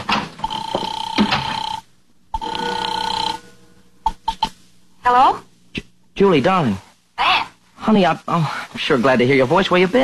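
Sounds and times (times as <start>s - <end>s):
telephone ringing: 0.0s - 4.4s
speech: 5.1s - 5.5s, 6.2s - 6.8s, 7.9s - 10.0s.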